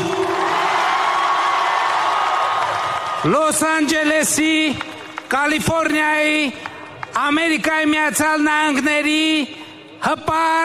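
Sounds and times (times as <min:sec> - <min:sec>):
large crowd cheering and whooping in a central park: 0:00.0 - 0:03.4
speech: 0:03.2 - 0:06.6, 0:07.2 - 0:10.6.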